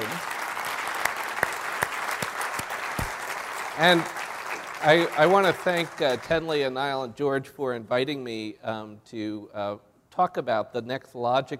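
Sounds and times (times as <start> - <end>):
audience applause: 0.0 - 6.6
speech: 3.8 - 4.2, 4.8 - 11.5.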